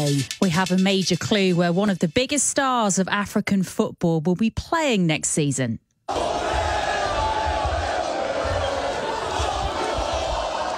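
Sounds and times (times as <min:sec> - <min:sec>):
speech: 0:00.0 - 0:06.4
crowd cheering a footballer's arrival: 0:06.1 - 0:10.7.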